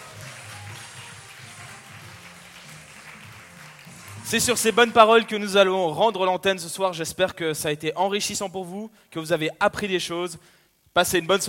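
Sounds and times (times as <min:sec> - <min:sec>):
crowd clapping: 0:00.0 - 0:05.7
speech: 0:04.3 - 0:11.4.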